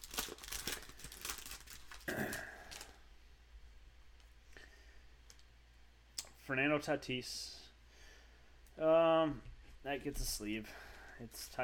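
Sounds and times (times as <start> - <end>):
foil packs of 2021 Heritage and Donruss MLB baseball cards being torn open: 0.0 - 3.0
speech: 6.5 - 7.6, 8.8 - 11.6.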